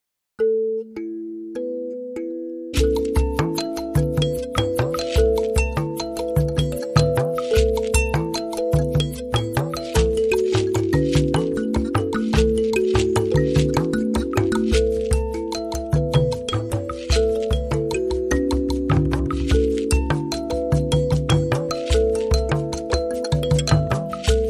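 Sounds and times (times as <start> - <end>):
mbira playing: 0.4 - 24.4.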